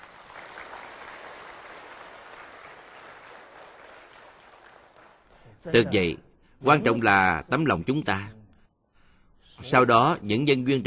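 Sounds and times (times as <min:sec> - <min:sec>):
audience applause: 0:00.0 - 0:05.5
speech: 0:05.6 - 0:08.4, 0:09.6 - 0:10.8.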